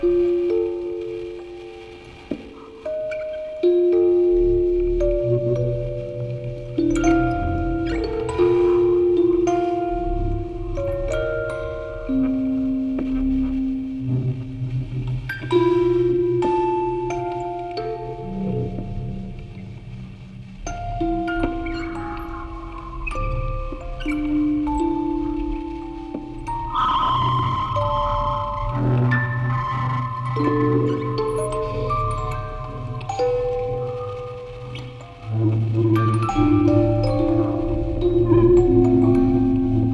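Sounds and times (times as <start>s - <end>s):
field recording ambience: 0.0s - 39.9s
quartet of music boxes playing: 0.0s - 39.9s.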